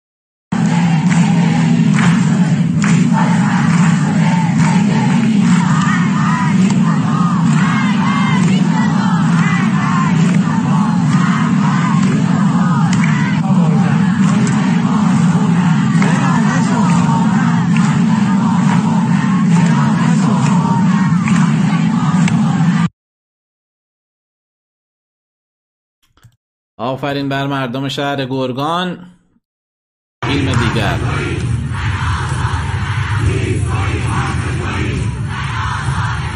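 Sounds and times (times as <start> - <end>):
crowd chanting in the streets at a memorial: 0.5 - 22.9, 30.2 - 36.3
speech: 26.8 - 29.2, 30.3 - 31.4.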